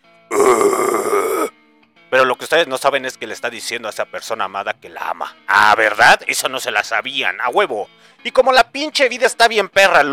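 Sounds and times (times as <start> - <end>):
person imitating a guttural metal vocal growl: 0.3 - 1.5
speech: 2.2 - 10.1.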